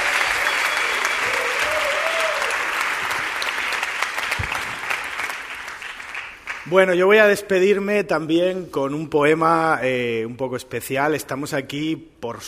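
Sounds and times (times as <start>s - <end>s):
audience applause: 0.0s - 6.7s
speech: 6.7s - 12.4s.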